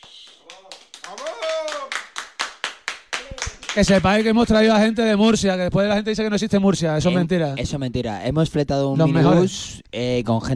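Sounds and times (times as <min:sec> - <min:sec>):
audience applause: 0:00.0 - 0:04.1
speech: 0:03.7 - 0:10.5.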